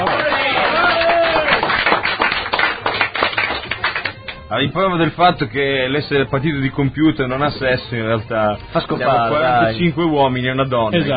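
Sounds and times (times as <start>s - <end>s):
audience applause: 0.0s - 4.2s
speech: 4.5s - 11.1s.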